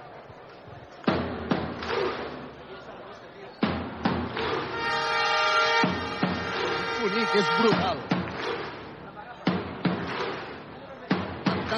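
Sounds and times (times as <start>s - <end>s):
crowd murmuring: 1.7s - 11.7s
deep horn blast for stadium Viking clap: 4.6s - 7.8s
stadium crowd Viking clap: 6.4s - 8.9s, 9.9s - 10.6s
speech: 7.2s - 8.1s.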